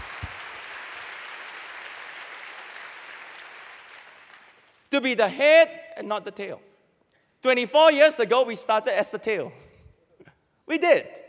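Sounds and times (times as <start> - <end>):
audience clapping: 0.0 - 4.9
speech: 4.9 - 6.7, 7.4 - 9.6, 10.7 - 11.2.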